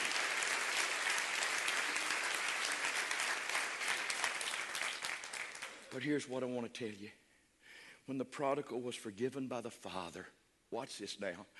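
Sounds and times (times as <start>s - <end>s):
applause: 0.0s - 6.2s
speech: 5.9s - 7.2s, 8.0s - 11.5s.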